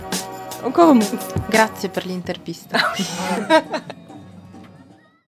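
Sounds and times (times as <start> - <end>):
jingle: 0.1 - 2.0
laughter: 2.7 - 4.3.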